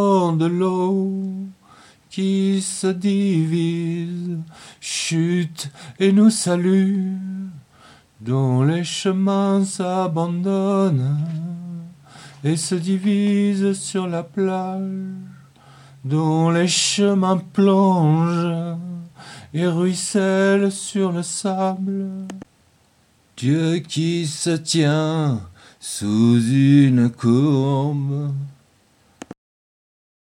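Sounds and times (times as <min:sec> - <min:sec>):
vocals: 0:00.0 - 0:29.4.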